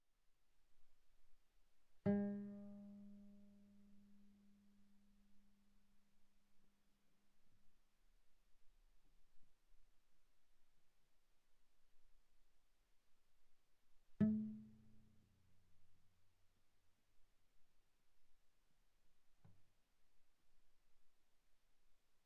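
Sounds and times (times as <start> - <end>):
viola pizzicato on the A string played pianissimo: 2.1 - 3.6.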